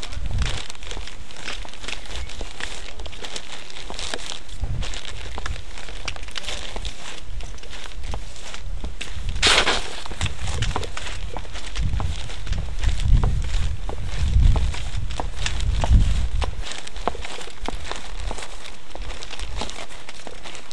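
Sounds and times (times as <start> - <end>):
footsteps walking: 0.0 - 20.7
blackbird song: 1.6 - 3.6.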